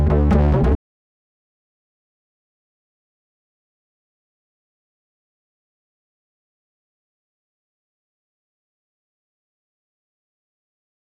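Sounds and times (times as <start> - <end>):
bass: 0.0 - 0.8.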